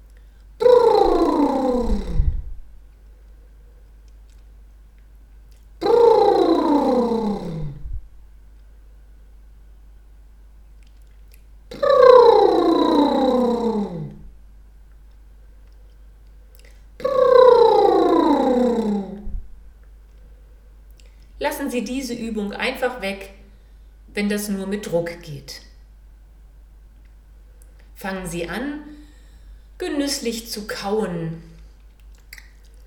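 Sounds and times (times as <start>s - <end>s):
buzzing lip trills: 0.6s - 2.4s, 5.5s - 7.8s, 11.0s - 14.2s, 16.6s - 19.3s
speech: 21.7s - 23.4s, 24.2s - 25.7s, 28.0s - 29.0s, 29.8s - 31.5s.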